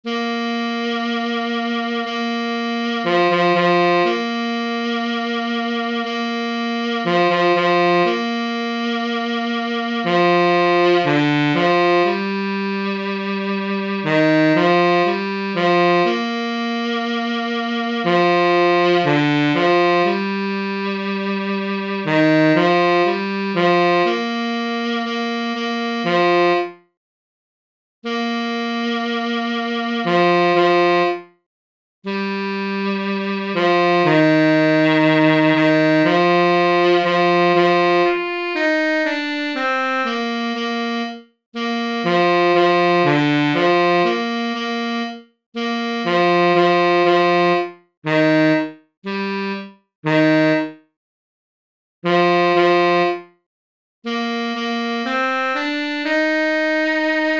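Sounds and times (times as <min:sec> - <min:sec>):
tenor saxophone: 0:00.1 - 0:26.9, 0:28.0 - 0:31.4, 0:32.1 - 0:50.9, 0:52.0 - 0:53.4, 0:54.1 - 0:57.3.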